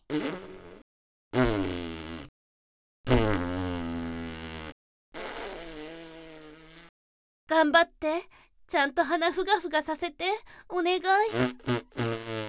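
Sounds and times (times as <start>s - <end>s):
fart: 0.0s - 0.8s, 1.4s - 2.3s, 3.1s - 6.9s, 11.3s - 12.4s
speech: 0.1s - 0.5s, 1.3s - 1.8s, 7.5s - 12.1s.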